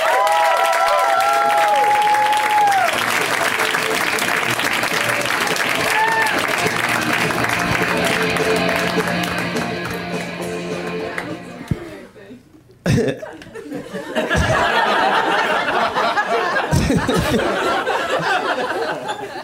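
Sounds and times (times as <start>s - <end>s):
audience clapping welcoming a performer: 0.0s - 11.8s
laughter: 12.9s - 19.4s.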